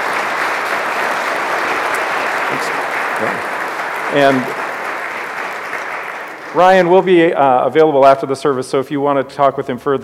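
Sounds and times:
audience applause: 0.0 - 7.3
speech: 2.6 - 3.5, 4.1 - 4.6, 6.6 - 10.0.

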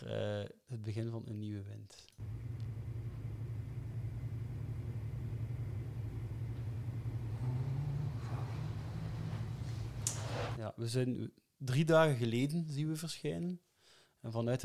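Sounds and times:
speech: 0.0 - 2.3, 10.6 - 14.6
airplane cabin engine rumble: 2.2 - 10.6.

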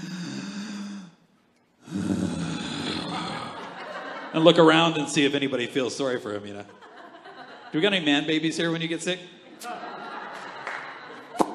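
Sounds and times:
person imitating sniffling: 1.8 - 3.5
laughter: 2.6 - 5.0, 6.5 - 11.5
speech: 4.3 - 6.9, 7.7 - 9.9.

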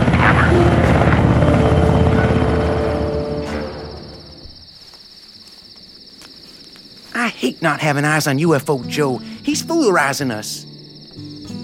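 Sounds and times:
Black Hawk helicopter flying overhead: 0.0 - 4.4
speech: 7.6 - 10.7.

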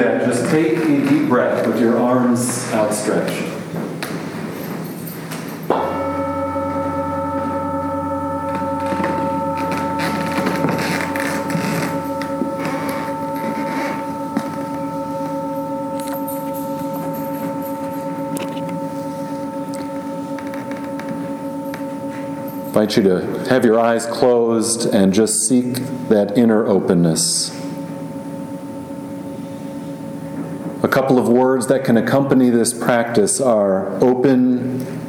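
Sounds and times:
meditation bell ringing: 0.0 - 35.0
speech: 0.5 - 3.9, 22.9 - 27.6, 31.1 - 35.0.

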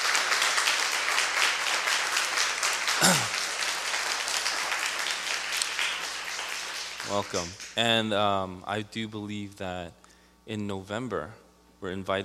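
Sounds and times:
audience applause welcoming visiting members of the Bruderhof community: 0.0 - 7.7
speech: 7.1 - 12.2.

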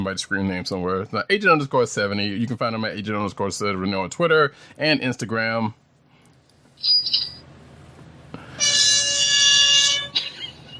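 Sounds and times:
speech: 0.0 - 5.8, 6.8 - 7.2
party horn blare: 8.4 - 10.4.

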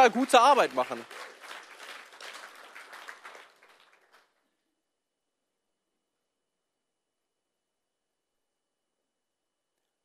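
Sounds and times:
speech: 0.0 - 1.2
audience applauding: 0.0 - 4.5.

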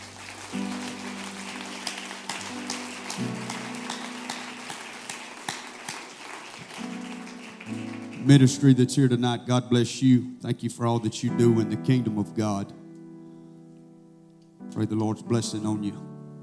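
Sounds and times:
audience clapping: 0.0 - 8.9
speech: 8.2 - 12.8, 14.8 - 16.1.

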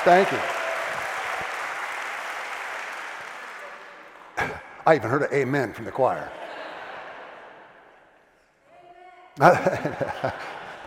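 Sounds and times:
speech: 0.0 - 0.6, 4.8 - 6.4, 9.4 - 10.6
audience applauding: 0.0 - 4.6
laughter: 6.0 - 8.0, 9.4 - 10.8.

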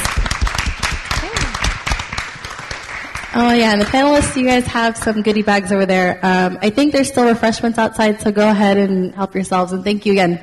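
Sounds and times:
audience applause: 0.0 - 4.6
speech: 3.3 - 10.4.

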